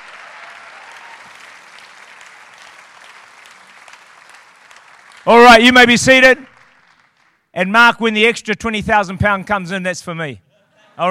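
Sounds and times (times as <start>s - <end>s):
audience clapping: 0.0s - 7.5s
speech: 5.2s - 6.5s, 7.6s - 10.4s.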